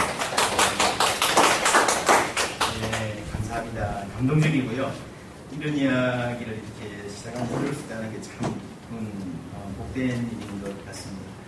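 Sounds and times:
audience applause: 0.0s - 3.7s
speech: 4.2s - 11.4s.

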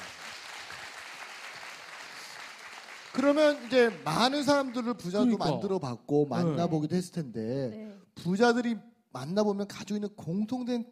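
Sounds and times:
audience applause: 0.0s - 5.2s
speech: 3.1s - 10.9s.

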